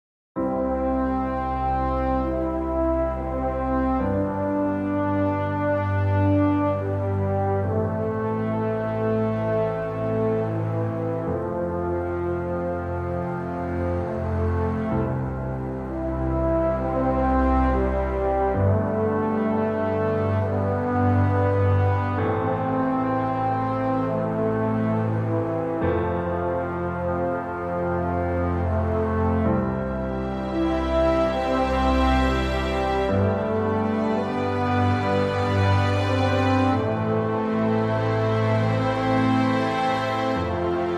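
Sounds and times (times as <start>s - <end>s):
legato piano: 0.4s - 40.9s.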